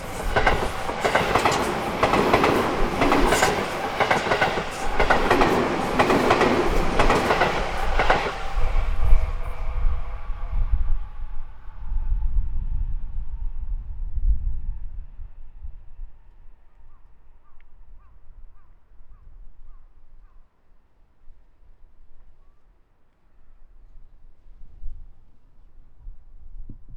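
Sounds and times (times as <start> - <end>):
outbound and inbound trains passing: 0.0 - 16.6.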